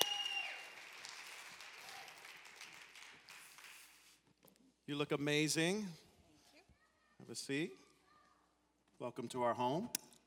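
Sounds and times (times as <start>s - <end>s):
audience applause: 0.0s - 3.8s
speech: 4.9s - 6.0s, 7.3s - 7.8s, 9.0s - 10.0s.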